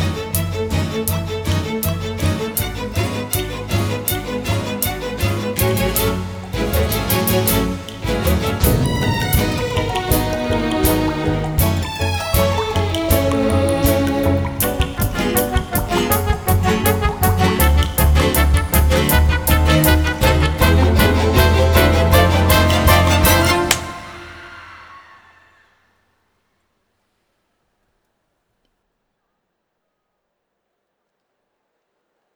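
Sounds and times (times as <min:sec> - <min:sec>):
instrumental music: 0:00.0 - 0:25.4.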